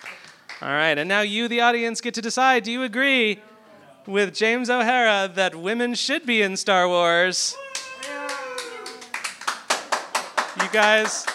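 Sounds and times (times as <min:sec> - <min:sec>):
speech: 0:00.6 - 0:07.6, 0:10.7 - 0:11.3
audience applause: 0:07.7 - 0:11.3.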